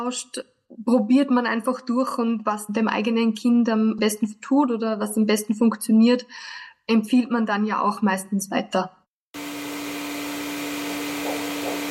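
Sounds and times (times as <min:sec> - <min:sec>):
speech: 0:00.0 - 0:09.0
vacuum cleaner running: 0:09.4 - 0:11.8.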